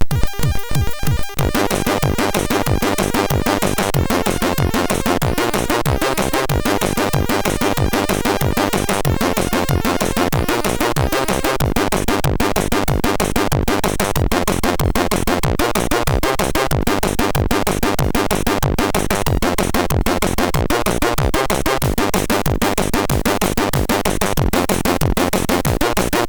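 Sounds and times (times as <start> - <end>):
techno mix on MOS6581R3 sound chip: 0.0 - 26.2.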